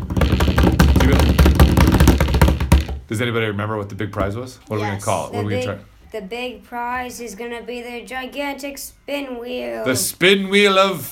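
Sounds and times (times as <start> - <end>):
drum roll at a school event: 0.0 - 3.0
speech: 3.1 - 11.1.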